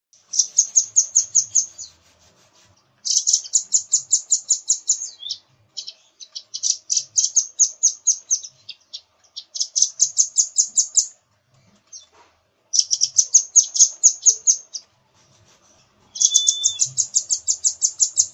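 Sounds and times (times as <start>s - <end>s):
nuthatch calling in quick high sharp notes: 0.2s - 2.1s, 3.0s - 11.2s, 12.7s - 14.9s, 16.1s - 18.3s.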